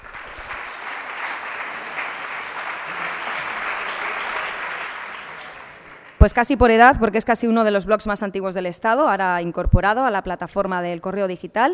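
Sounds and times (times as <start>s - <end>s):
applause: 0.0s - 6.8s
speech: 6.2s - 11.7s.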